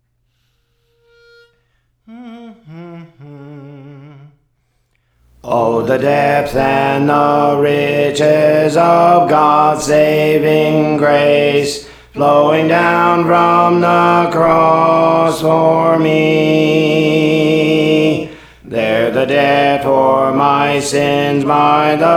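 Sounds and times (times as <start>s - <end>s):
alto voice singing songs: 2.1s - 4.4s, 5.3s - 22.1s.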